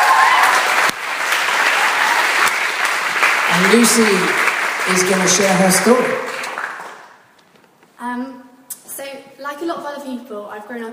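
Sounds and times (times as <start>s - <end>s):
audience applause: 0.0s - 7.2s
speech: 3.6s - 6.4s, 9.6s - 10.9s.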